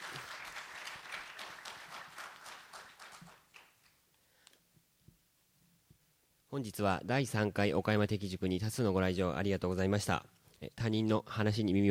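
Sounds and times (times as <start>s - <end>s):
audience applause: 0.0s - 3.9s
speech: 6.6s - 11.8s.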